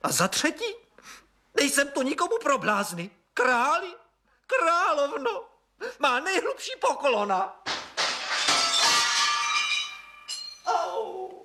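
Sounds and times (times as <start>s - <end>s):
speech: 0.0s - 7.7s
window glass shattering: 7.6s - 10.7s.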